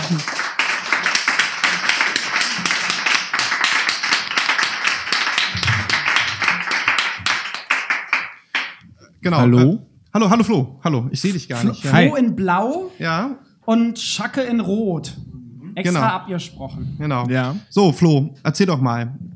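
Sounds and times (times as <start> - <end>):
applause: 0.0 - 8.8
speech: 0.1 - 0.4, 9.2 - 19.3.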